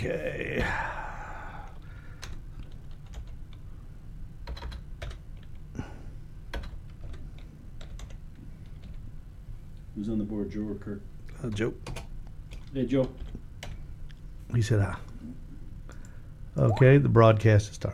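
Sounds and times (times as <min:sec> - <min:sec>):
speech: 0:00.0 - 0:00.9, 0:10.0 - 0:12.0, 0:12.7 - 0:13.4, 0:14.5 - 0:15.4, 0:16.6 - 0:17.9
faint steady hum: 0:00.0 - 0:17.9
quiet typing on a computer keyboard: 0:02.2 - 0:03.6, 0:04.4 - 0:05.6, 0:06.5 - 0:09.0, 0:11.4 - 0:13.8.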